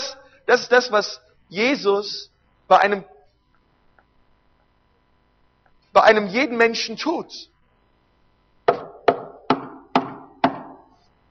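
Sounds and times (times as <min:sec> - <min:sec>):
speech: 0:00.5 - 0:03.1, 0:06.0 - 0:07.5
knocking on a door: 0:08.7 - 0:10.9.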